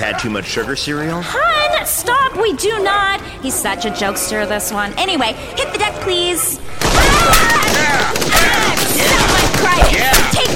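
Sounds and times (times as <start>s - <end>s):
speech: 0.0s - 10.5s
suppressing gunfire with shock rounds: 6.7s - 10.5s.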